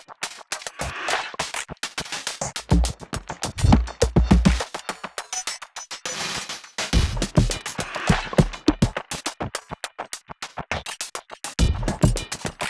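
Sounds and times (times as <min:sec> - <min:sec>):
drum music: 0:02.6 - 0:04.8, 0:06.9 - 0:09.0, 0:11.6 - 0:12.6.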